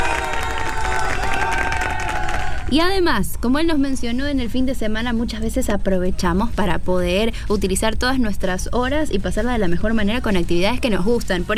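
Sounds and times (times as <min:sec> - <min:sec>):
audience applause on a family-themed show: 0:00.0 - 0:02.7
crowd cheering and shouting on a family-themed show: 0:00.0 - 0:02.8
speech: 0:02.7 - 0:11.5.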